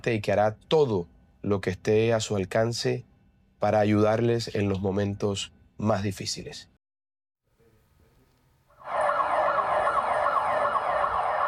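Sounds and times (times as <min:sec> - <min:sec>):
speech: 0:00.0 - 0:06.7
earthquake warning alarms in Bogotá: 0:08.7 - 0:11.4.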